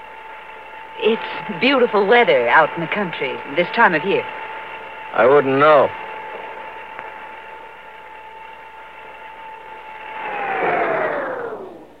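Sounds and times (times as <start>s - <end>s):
elevator motor whine stopping between floors after a power cut: 0.0s - 11.9s
speech: 1.0s - 4.4s, 5.2s - 6.1s.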